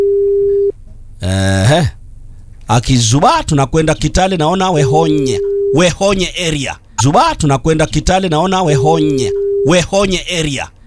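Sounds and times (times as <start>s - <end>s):
outgoing telephone call ringback tone: 0.0s - 0.7s, 9.2s - 9.7s
speech: 2.7s - 10.8s.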